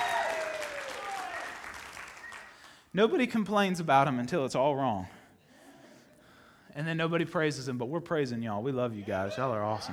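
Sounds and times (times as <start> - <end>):
audience applauding: 0.0 - 2.8
speech: 2.9 - 5.2, 6.8 - 9.9.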